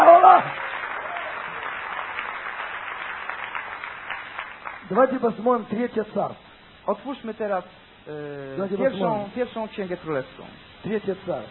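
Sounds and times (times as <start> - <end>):
audience applause: 0.0 - 5.2
speech: 4.9 - 11.4.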